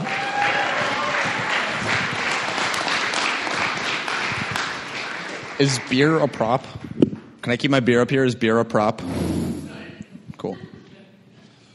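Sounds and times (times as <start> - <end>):
round of applause: 0.0 - 6.7
speech: 5.6 - 9.3.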